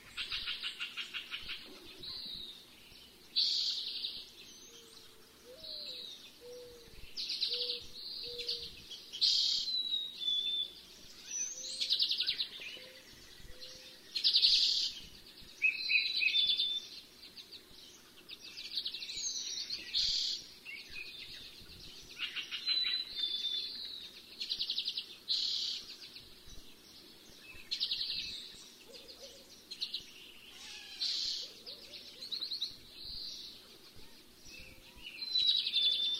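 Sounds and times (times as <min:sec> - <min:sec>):
chorus of North American birds singing: 0:00.0 - 0:36.1.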